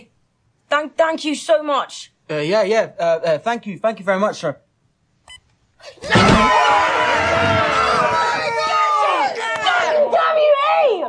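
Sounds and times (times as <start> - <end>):
speech: 0.8 - 4.6
people celebrating: 6.1 - 10.6.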